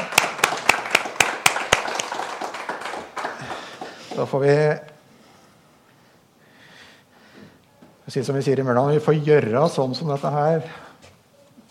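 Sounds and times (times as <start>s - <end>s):
audience applause: 0.0s - 4.5s
speech: 4.2s - 4.9s, 8.1s - 10.8s.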